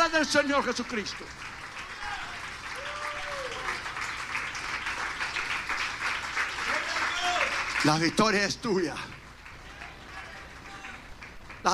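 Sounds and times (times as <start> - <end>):
audience applause: 0.0 - 11.7
speech: 0.2 - 1.6, 7.8 - 9.2.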